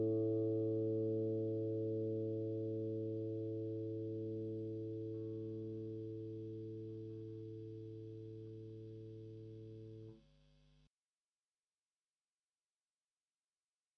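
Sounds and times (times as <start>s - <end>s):
Gibson Les Paul Studio electric guitar on bridge pickup: 0.0s - 10.1s.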